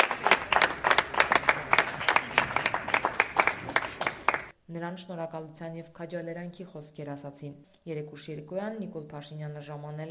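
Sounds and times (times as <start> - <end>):
community gathering applauding a visiting official: 0.0 - 4.5
faint crowd murmur: 0.0 - 4.5
speech: 4.8 - 10.1.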